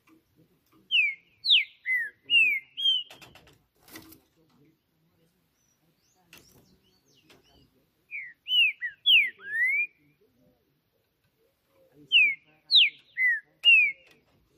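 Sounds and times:
green-winged saltator whistled phrases: 0:00.9 - 0:03.2, 0:08.1 - 0:10.0, 0:12.1 - 0:14.2.

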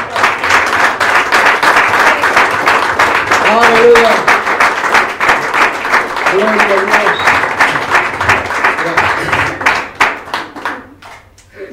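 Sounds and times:
audience applauding: 0:00.0 - 0:11.3.

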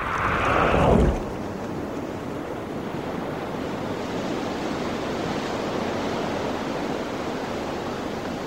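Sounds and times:
wave crashing on a lonely beach in a quiet bay of a small island: 0:00.0 - 0:02.3
steady broad roar of surf and wash on a lonely island beach: 0:00.0 - 0:08.4.

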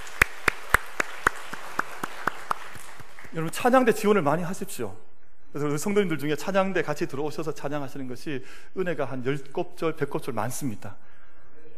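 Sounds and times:
group clapping in a steady rhythm: 0:00.0 - 0:03.9
speech: 0:03.3 - 0:11.1.

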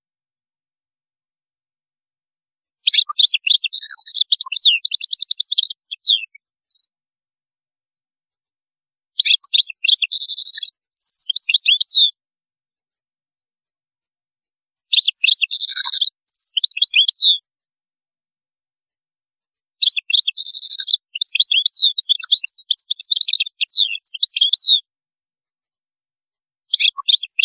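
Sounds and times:
European goldfinch song: 0:02.8 - 0:06.9, 0:09.1 - 0:12.2, 0:14.9 - 0:17.4, 0:19.8 - 0:24.9, 0:26.7 - 0:27.4.

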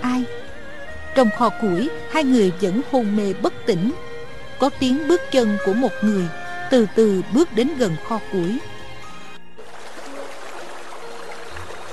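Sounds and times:
speech: 0:01.2 - 0:08.7
cold water dripping and trickling onto a person's face in a woodshed: 0:09.6 - 0:11.9.

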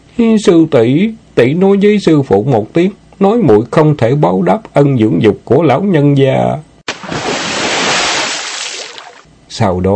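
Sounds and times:
speech: 0:00.2 - 0:06.7, 0:09.6 - 0:09.9
water splashing and sloshing: 0:06.9 - 0:09.3.

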